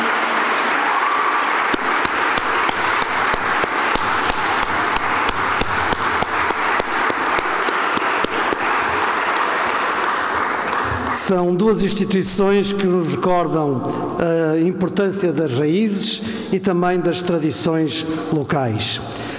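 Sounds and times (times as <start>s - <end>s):
applause in parliament: 0.0s - 11.9s
speech: 11.3s - 19.3s.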